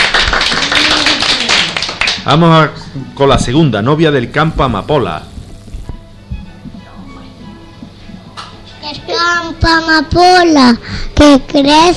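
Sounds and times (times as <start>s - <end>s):
applause: 0.0s - 2.5s
speech: 2.3s - 5.3s, 9.4s - 11.9s.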